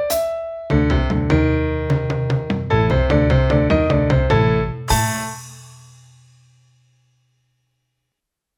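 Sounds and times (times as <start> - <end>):
bluesy riff etude: 0.0 - 5.6.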